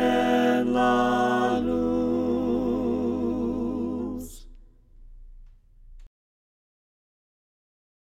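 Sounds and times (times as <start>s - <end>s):
voices singing a cappella hymn: 0.0s - 4.7s.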